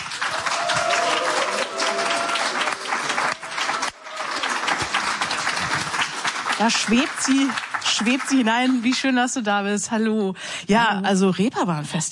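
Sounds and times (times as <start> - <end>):
studio audience applauding to welcome a guest onto a talk show: 0.0 - 9.1
speech: 6.6 - 12.1.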